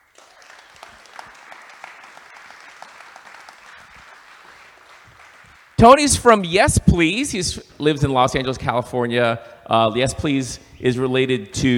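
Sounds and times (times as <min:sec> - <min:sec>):
crowd applauding: 0:00.0 - 0:06.5
speech: 0:05.8 - 0:11.7.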